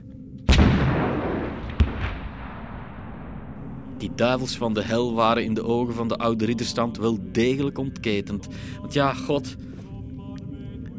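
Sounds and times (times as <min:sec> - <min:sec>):
cannon fire: 0:00.5 - 0:04.7
speech: 0:04.0 - 0:09.7.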